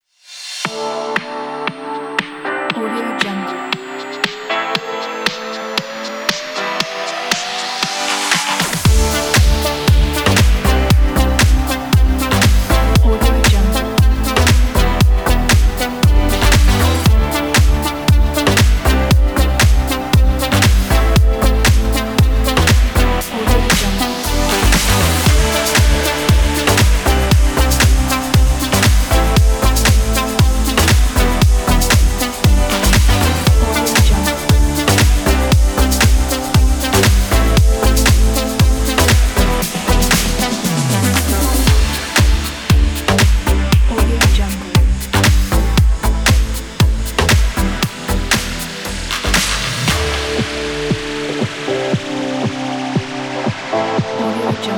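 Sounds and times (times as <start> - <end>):
promo fashion pop music: 0.6 - 54.7.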